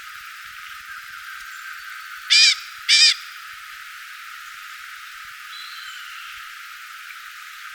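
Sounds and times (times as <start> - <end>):
bird rasping calls: 2.3 - 3.4.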